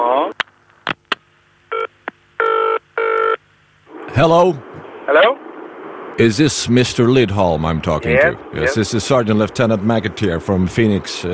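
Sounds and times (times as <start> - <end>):
brief telephone line tone: 1.7 - 3.4
speech: 4.2 - 5.4, 6.2 - 11.3.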